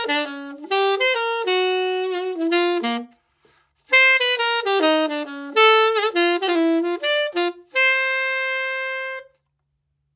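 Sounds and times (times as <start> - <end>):
jazz tenor saxophone: 0.0 - 9.4.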